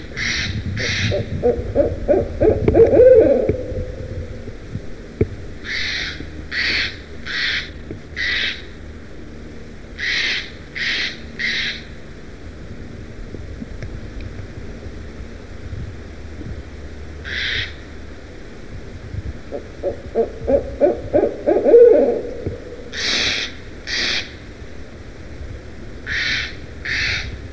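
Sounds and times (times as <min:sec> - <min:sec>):
barred owl hooting: 0:00.0 - 0:04.6, 0:05.6 - 0:08.8, 0:10.0 - 0:12.0, 0:17.2 - 0:17.8, 0:19.5 - 0:24.4, 0:26.0 - 0:27.4.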